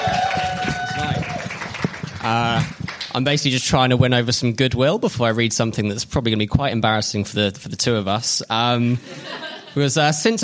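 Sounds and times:
audience applause: 0:00.0 - 0:03.2
speech: 0:02.3 - 0:10.4
laughter: 0:09.0 - 0:09.9.

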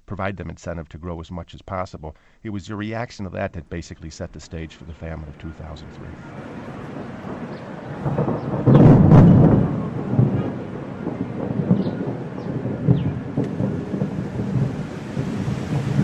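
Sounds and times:
speech: 0:00.1 - 0:06.8
loud deep rumble of thunder: 0:04.2 - 0:16.0
steady rain: 0:04.4 - 0:16.0.

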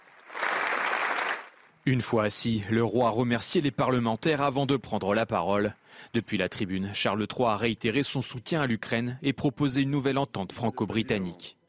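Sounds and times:
applause in the Senate: 0:00.0 - 0:01.8
speech: 0:01.8 - 0:11.6.

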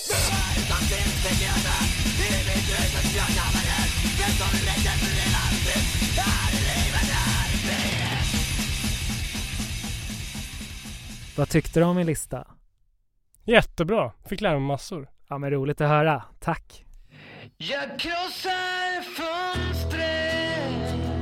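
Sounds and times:
hardcore crust punk song: 0:00.0 - 0:11.8, 0:17.6 - 0:21.2
speech: 0:11.4 - 0:12.6, 0:13.5 - 0:16.8, 0:17.5 - 0:20.3.

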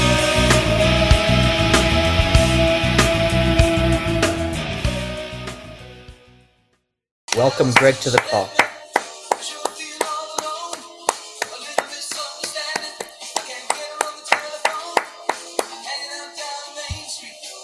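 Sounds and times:
music: 0:00.0 - 0:17.6
hand clapping along with music: 0:07.3 - 0:16.0
speech: 0:07.4 - 0:08.6.

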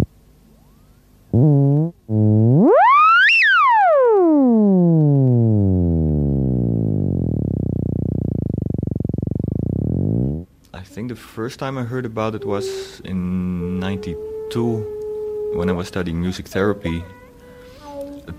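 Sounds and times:
theremin tone: 0:02.1 - 0:10.4, 0:12.4 - 0:18.3
speech: 0:11.4 - 0:17.2.

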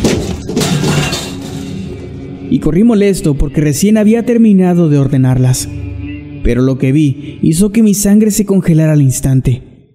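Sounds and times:
several boxes falling: 0:00.0 - 0:01.7
speech: 0:02.5 - 0:09.7.

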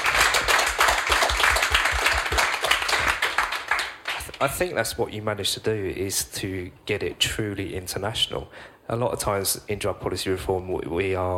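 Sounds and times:
audience applause: 0:00.0 - 0:04.4
speech: 0:04.4 - 0:11.3.

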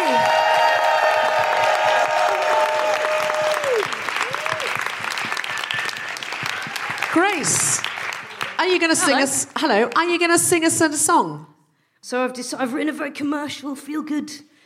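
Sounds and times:
live audience applause and cheering: 0:00.0 - 0:09.5
speech: 0:08.8 - 0:11.5, 0:12.1 - 0:14.5.

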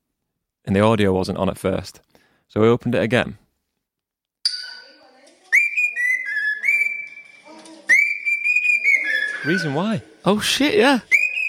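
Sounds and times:
speech: 0:00.6 - 0:03.4, 0:09.4 - 0:11.2
caged cockatoo whistling a song: 0:04.5 - 0:09.8, 0:11.1 - 0:11.4.

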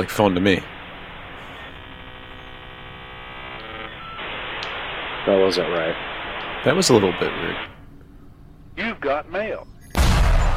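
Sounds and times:
speech: 0:00.0 - 0:00.7, 0:05.2 - 0:07.7, 0:08.8 - 0:09.7
56K dial-up modem connecting: 0:00.0 - 0:07.8.

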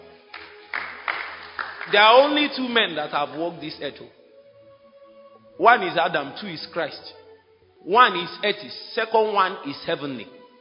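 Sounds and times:
clapping: 0:00.3 - 0:02.3
speech: 0:01.9 - 0:04.2, 0:05.6 - 0:07.2, 0:07.8 - 0:10.4.

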